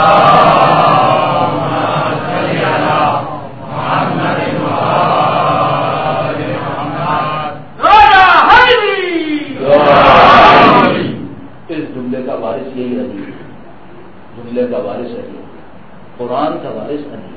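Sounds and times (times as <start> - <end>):
large crowd loudly chanting a religious invocation in unison: 0.0 - 7.7, 9.6 - 11.3
quieter scattered voices: 0.0 - 11.4.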